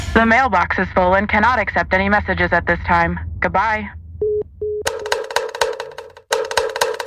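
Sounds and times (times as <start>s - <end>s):
speech: 0.2s - 4.4s
kentongan slit drum being struck: 4.9s - 7.0s.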